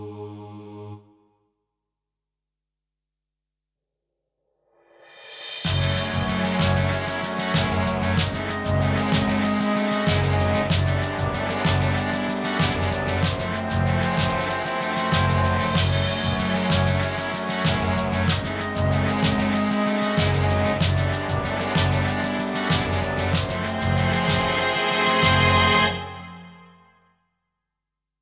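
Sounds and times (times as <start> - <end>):
tense battle music: 5.7 - 26.6.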